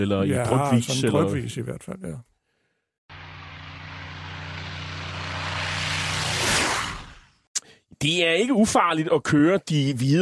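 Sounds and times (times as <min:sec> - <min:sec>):
speech: 0:00.0 - 0:02.3, 0:08.0 - 0:10.1
low-flying Spitfire propeller engine passing overhead: 0:03.1 - 0:07.3.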